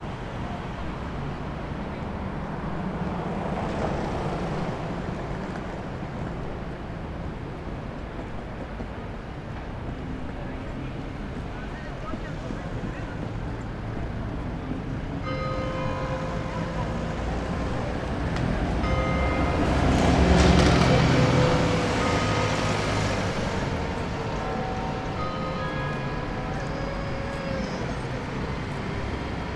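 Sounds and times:
urban city ambience in Whitehall London: 0.0s - 29.5s
Big Ben bell chiming in background: 15.2s - 18.2s, 18.8s - 27.7s.

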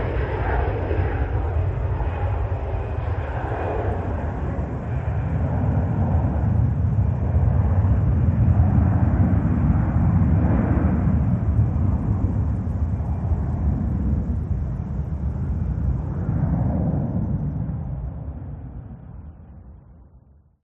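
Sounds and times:
jet airplane: 0.0s - 20.6s.

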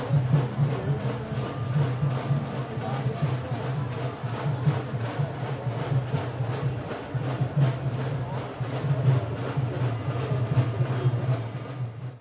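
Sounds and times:
protest crowd atmosphere: 0.0s - 12.1s
steady drums at a protest: 0.0s - 12.1s.

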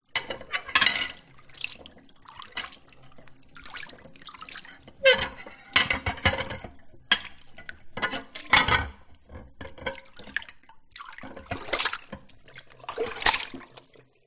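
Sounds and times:
water inside a bowl in a kitchen sink: 0.1s - 14.2s
household crockery moving in a kitchen: 0.2s - 1.4s, 5.0s - 10.1s.

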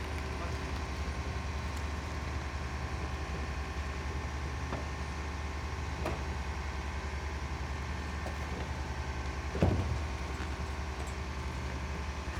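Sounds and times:
construction site ambience: 0.0s - 12.3s.

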